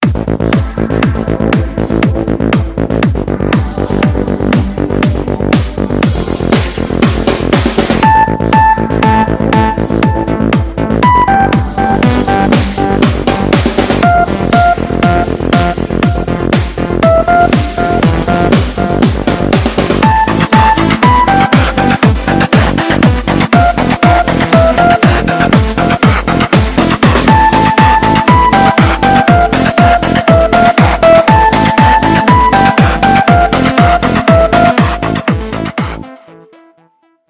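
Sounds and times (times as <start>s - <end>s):
trance ringtone: 0.5s - 37.0s.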